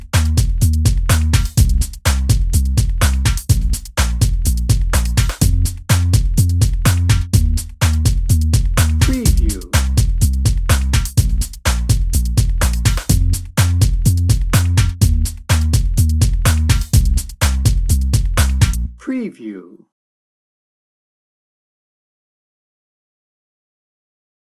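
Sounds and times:
atmospheric drum and bass music: 0:00.0 - 0:18.9.

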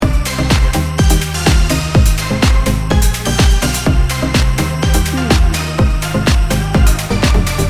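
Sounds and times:
EDM dance party loop: 0:00.0 - 0:07.6.

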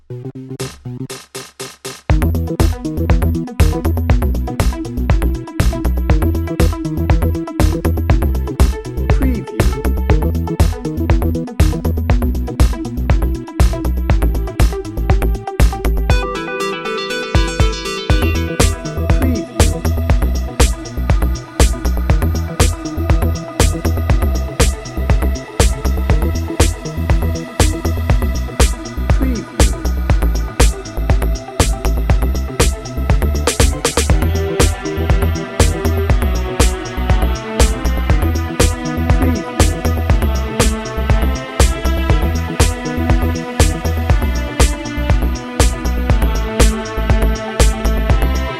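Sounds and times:
bouncy dreamy music bed: 0:02.1 - 0:48.5.

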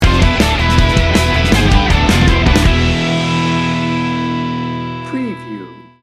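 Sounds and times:
music sting bumper: 0:00.0 - 0:05.9.

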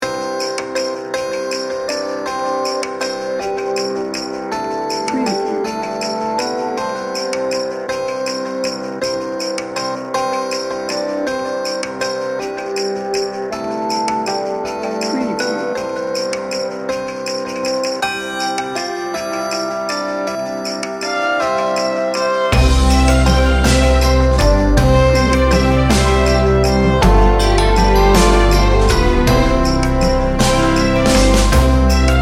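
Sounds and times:
carol melody: 0:00.0 - 0:32.2.

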